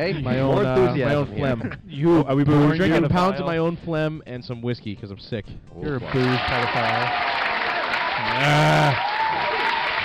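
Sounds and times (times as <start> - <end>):
speech: 0.0 - 7.4, 8.2 - 9.5
applause: 6.0 - 10.0.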